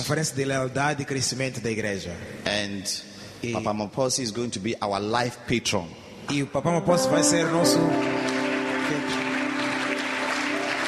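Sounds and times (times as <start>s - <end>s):
speech: 0.0s - 8.3s
audience clapping: 7.3s - 10.8s.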